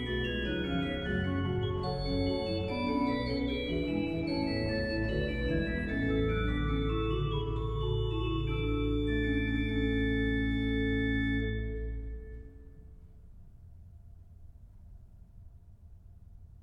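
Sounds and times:
organ playing chorale preludes: 0.0 - 13.0.

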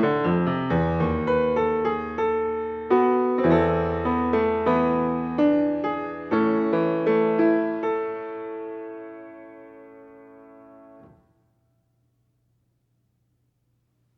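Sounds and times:
fugue in A on piano: 0.0 - 11.3.

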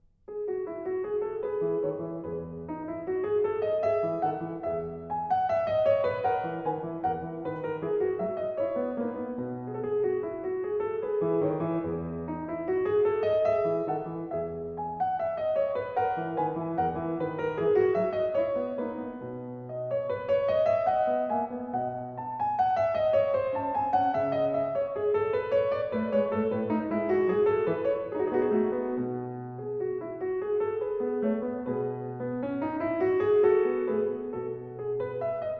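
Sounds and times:
piano minuet: 0.0 - 35.5.

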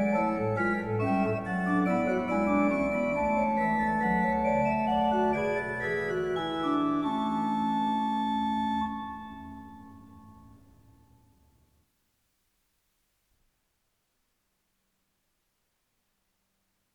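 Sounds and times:
organ playing a fughetta: 0.0 - 10.9.

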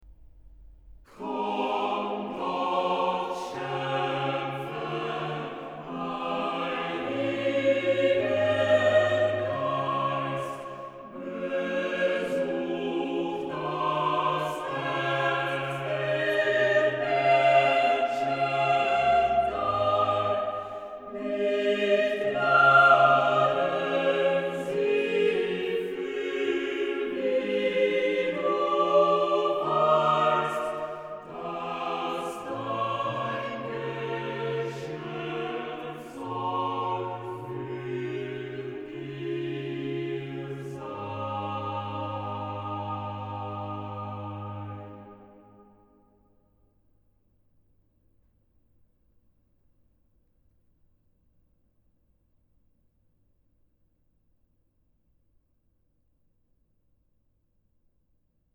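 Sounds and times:
organ chorale: 1.1 - 45.8.

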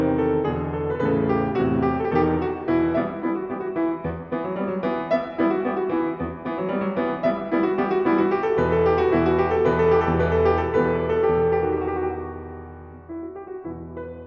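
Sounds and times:
keyboard suite music: 0.1 - 13.1.

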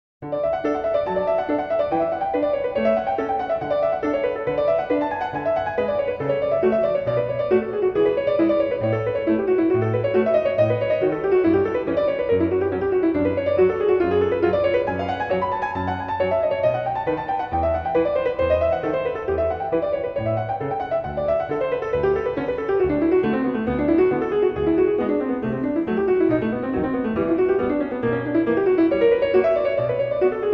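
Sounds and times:
prelude in D major: 0.7 - 30.5.

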